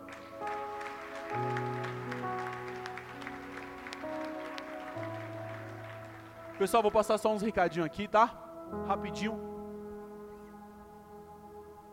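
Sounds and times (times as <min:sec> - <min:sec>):
audience applauding: 0:00.0 - 0:07.9
speech: 0:06.6 - 0:09.5.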